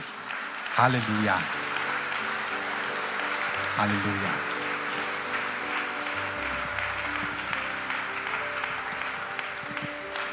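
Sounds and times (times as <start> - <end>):
applause: 0.0 - 10.3
speech: 0.8 - 1.6, 3.8 - 4.5.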